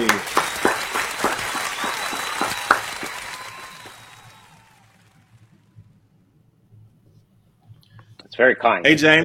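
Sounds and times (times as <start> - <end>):
audience applause welcoming a thriller author on an interview show: 0.0 - 5.7
speech: 8.4 - 9.2.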